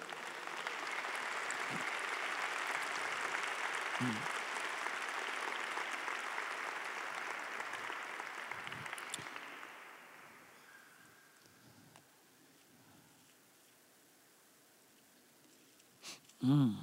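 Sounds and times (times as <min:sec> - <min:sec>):
church congregation applauding during a Spanish-language sermon: 0:00.0 - 0:11.0
speech: 0:01.7 - 0:01.9, 0:04.0 - 0:04.4, 0:16.4 - 0:16.8.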